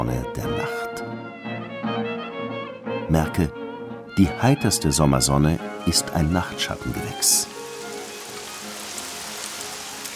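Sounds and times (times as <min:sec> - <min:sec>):
speech: 0:00.0 - 0:00.8, 0:03.1 - 0:03.6, 0:04.2 - 0:07.6
warm summer rain rustling on bushes and trees: 0:05.7 - 0:10.1.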